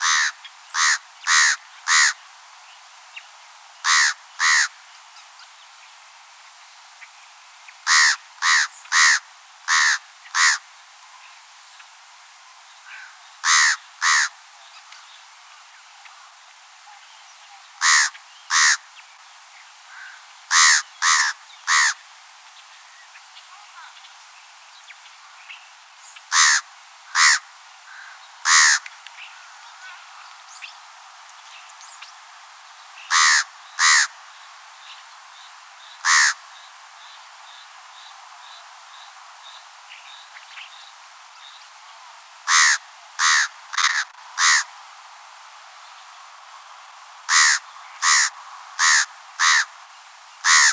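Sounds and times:
fish crow calling: 0:00.0 - 0:02.2, 0:03.8 - 0:04.8, 0:07.8 - 0:10.7, 0:12.9 - 0:14.4, 0:17.8 - 0:18.9, 0:19.9 - 0:22.0, 0:26.3 - 0:30.0, 0:33.1 - 0:34.2, 0:36.0 - 0:36.5, 0:42.5 - 0:44.7, 0:47.3 - 0:49.8, 0:50.4 - 0:50.7.

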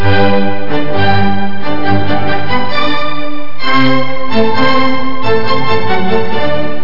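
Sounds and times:
orchestra: 0:00.0 - 0:06.8.

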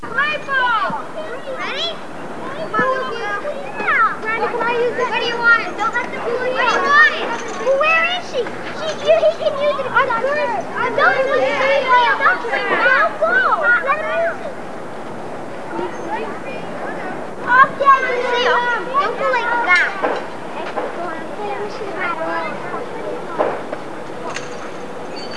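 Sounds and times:
children: 0:00.0 - 0:25.3.

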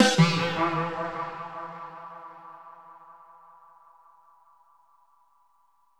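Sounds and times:
ambient drum loop: 0:00.0 - 0:01.9.

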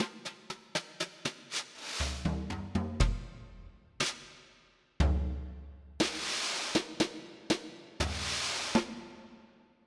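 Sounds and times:
jazz kit comping: 0:00.0 - 0:04.2, 0:06.0 - 0:07.1, 0:08.0 - 0:09.0.

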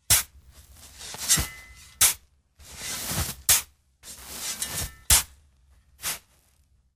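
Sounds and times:
digging: 0:00.0 - 0:06.7.

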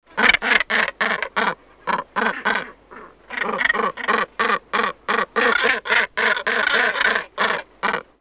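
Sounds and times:
water birds giving harsh nasal quacks: 0:00.1 - 0:08.1.

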